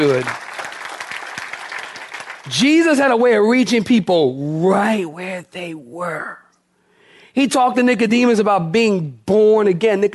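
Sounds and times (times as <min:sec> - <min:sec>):
speech: 0:00.0 - 0:00.4, 0:02.5 - 0:06.4, 0:07.4 - 0:10.1
audience clapping: 0:00.0 - 0:03.1.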